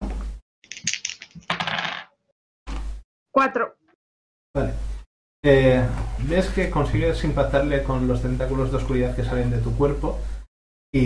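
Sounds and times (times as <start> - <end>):
two six-sided dice clattering across a hard surface: 0.7 - 2.1
speech: 3.4 - 3.8, 4.6 - 4.8, 5.4 - 10.3.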